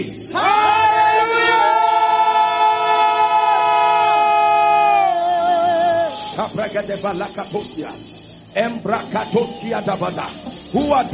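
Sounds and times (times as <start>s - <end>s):
crowd shouting together: 0.3s - 6.4s
speech: 6.7s - 11.1s.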